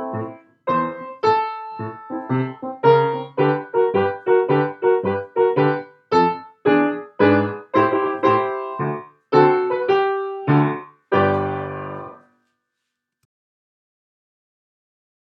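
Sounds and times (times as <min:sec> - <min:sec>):
instrumental finale music: 0:00.0 - 0:12.2.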